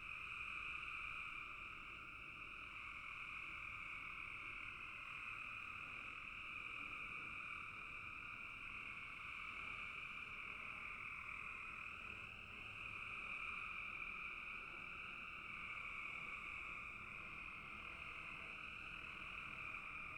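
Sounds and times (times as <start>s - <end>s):
frog chorus: 0.0s - 20.1s.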